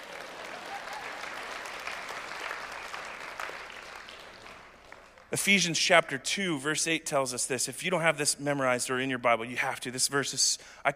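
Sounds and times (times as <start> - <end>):
audience applause: 0.0 - 5.3
speech: 5.3 - 10.9.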